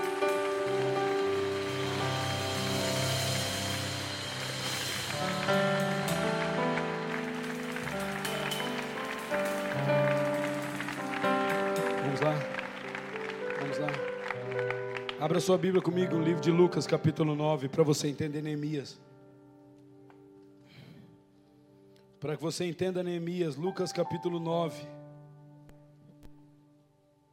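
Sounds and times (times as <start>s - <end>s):
audience applauding: 0.0s - 16.3s
speech: 15.3s - 19.1s, 22.2s - 25.0s.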